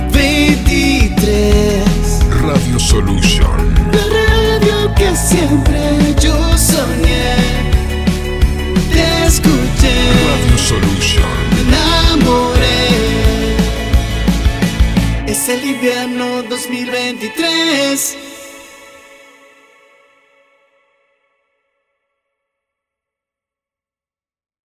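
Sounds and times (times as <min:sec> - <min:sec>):
winter jingle: 0:00.2 - 0:07.7, 0:08.6 - 0:18.2.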